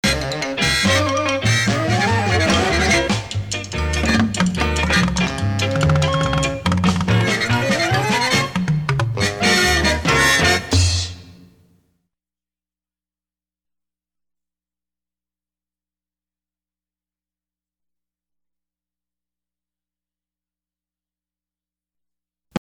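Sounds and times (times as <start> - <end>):
instrumental jingle: 0.1 - 10.8.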